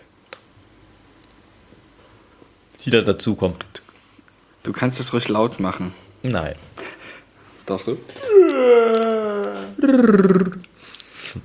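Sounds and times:
speech: 2.8s - 3.8s, 4.6s - 6.7s, 7.7s - 9.1s, 9.8s - 10.7s
dog yawning with a rolled R: 8.2s - 10.7s.

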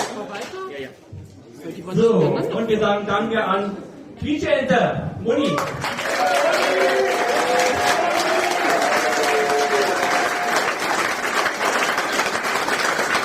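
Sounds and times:
speech: 0.2s - 7.1s
audience applause: 5.6s - 13.2s.

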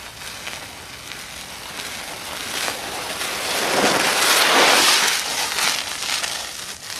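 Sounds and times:
glove swished as foley of a passing car: 3.2s - 5.4s.

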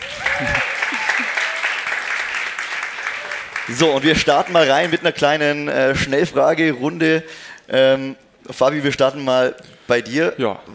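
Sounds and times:
audience applause welcoming guests on a show: 0.0s - 5.2s
speech: 0.4s - 0.7s, 3.7s - 10.7s.

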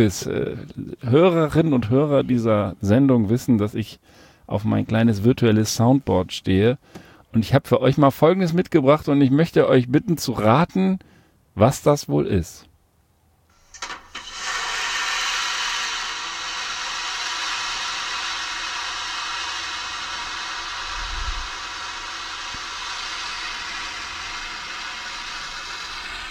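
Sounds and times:
speech: 0.0s - 12.7s
airplane toilet flush: 13.7s - 26.3s.

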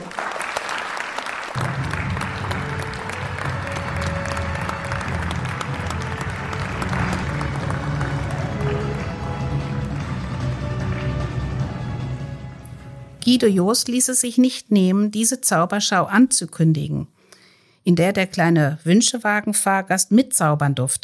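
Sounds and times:
audience applause: 0.0s - 12.7s
speech: 13.3s - 17.2s, 17.8s - 21.0s.

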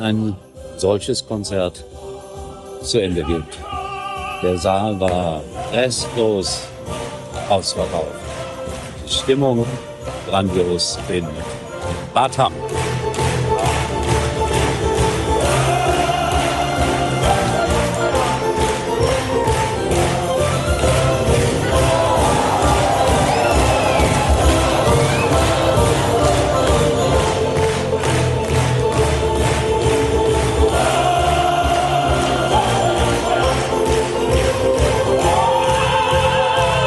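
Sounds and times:
speech: 0.0s - 2.1s, 2.8s - 3.8s, 4.4s - 8.4s, 9.1s - 11.6s, 12.2s - 12.7s
concert audience applauding: 7.0s - 36.8s
concert audience cheering and shouting: 15.1s - 36.8s.

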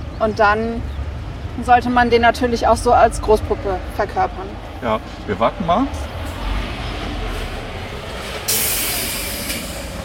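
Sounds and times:
train rumbling: 0.0s - 10.0s
speech: 0.2s - 0.9s, 1.6s - 6.1s
train letting off steam: 8.2s - 10.0s.

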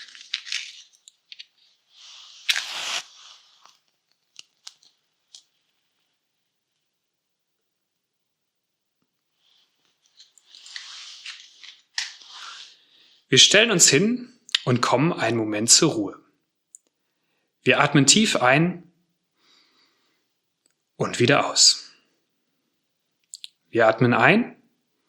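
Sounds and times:
lighting a candle: 2.0s - 5.5s
speech: 13.3s - 16.3s, 17.6s - 18.9s, 21.0s - 21.8s, 23.7s - 24.6s.

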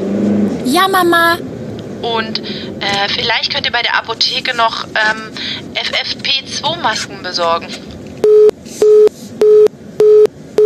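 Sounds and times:
speech: 0.6s - 7.9s
telephone busy tone after a call drops: 8.2s - 10.6s.

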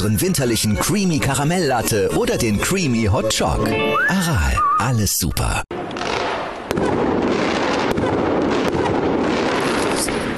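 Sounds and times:
speech: 0.0s - 6.0s
fireworks set off by football fans: 5.7s - 10.3s.

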